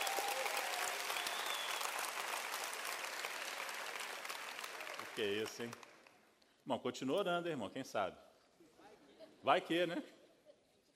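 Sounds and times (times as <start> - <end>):
crowd applauding: 0.0 - 6.2
speech: 5.2 - 5.8, 6.7 - 8.2, 9.4 - 10.2.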